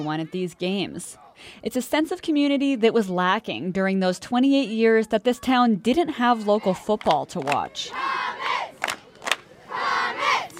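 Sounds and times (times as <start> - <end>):
speech: 0.0 - 8.7
football crowd cheering: 6.0 - 10.5.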